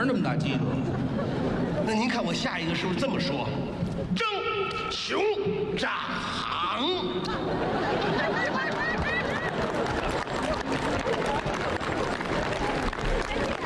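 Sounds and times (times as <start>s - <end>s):
laughter: 0.0s - 2.5s, 6.5s - 13.6s
speech: 0.0s - 8.7s
crowd murmuring: 0.0s - 13.6s
audience applause: 7.8s - 13.6s.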